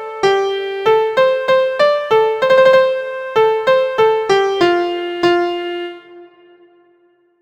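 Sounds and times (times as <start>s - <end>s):
MIDI music: 0.2s - 7.1s.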